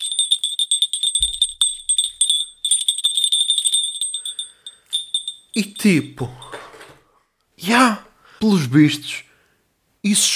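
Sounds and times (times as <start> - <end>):
keychain jingling: 0.0 - 6.8
speech: 5.6 - 6.5, 7.6 - 9.3, 10.0 - 10.3.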